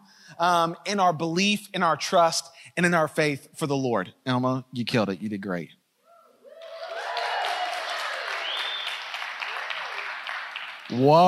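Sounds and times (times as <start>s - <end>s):
speech: 0.4s - 5.8s, 10.9s - 11.2s
audience applause: 6.6s - 11.2s.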